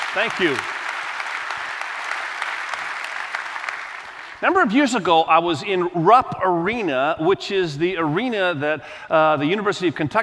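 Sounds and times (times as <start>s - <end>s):
audience applause welcoming guests: 0.0s - 4.4s
speech: 0.2s - 0.8s, 4.4s - 10.2s.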